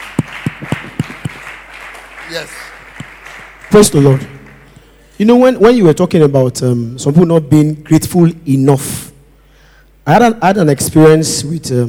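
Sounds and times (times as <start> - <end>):
audience clapping: 0.0 - 5.0
speech: 2.3 - 2.8, 3.7 - 4.3, 5.2 - 9.1, 10.1 - 11.8.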